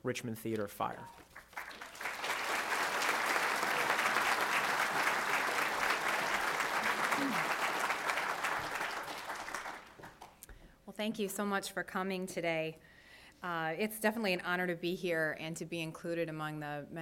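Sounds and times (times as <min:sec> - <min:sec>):
speech: 0:00.0 - 0:01.4, 0:11.0 - 0:16.9
audience applauding to welcome a history speaker to a lecture: 0:01.4 - 0:10.3.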